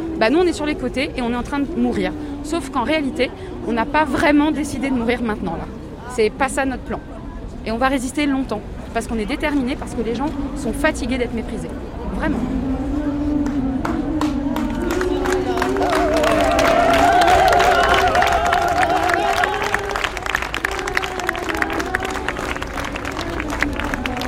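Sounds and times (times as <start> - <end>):
speech: 0.2 - 12.8
applause from a protest crowd of Handmaids: 13.5 - 24.2.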